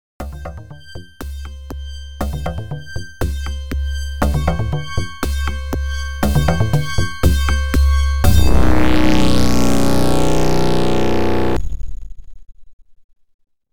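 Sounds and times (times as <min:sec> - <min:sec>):
OPL3 FM synthesizer music: 0:00.2 - 0:11.6.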